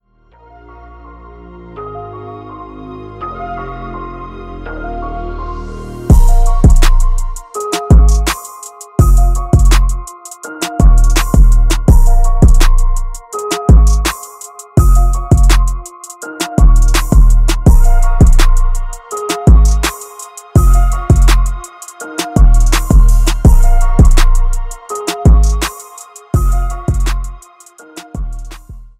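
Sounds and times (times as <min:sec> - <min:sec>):
instrumental ringtone: 0:06.1 - 0:28.5.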